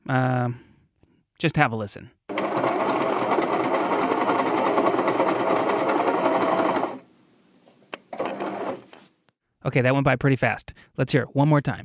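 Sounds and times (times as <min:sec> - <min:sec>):
speech: 0:00.1 - 0:00.7, 0:01.4 - 0:02.8, 0:09.6 - 0:11.8
sewing machine running: 0:02.3 - 0:07.1, 0:08.1 - 0:08.9.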